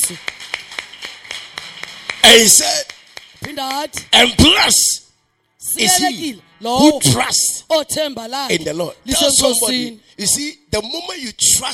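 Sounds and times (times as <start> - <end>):
church congregation clapping for Jesus: 0.0 - 4.8
speech: 0.1 - 0.3, 2.2 - 5.0, 5.7 - 11.7.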